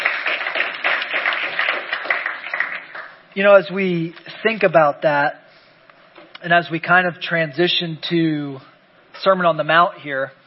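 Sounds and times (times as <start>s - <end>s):
crowd applauding: 0.0s - 3.3s
speech: 3.4s - 5.4s, 6.4s - 10.4s.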